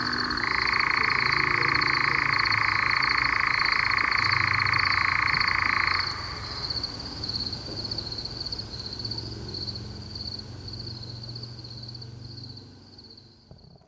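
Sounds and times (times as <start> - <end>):
nightjar calls: 0.0 - 6.9.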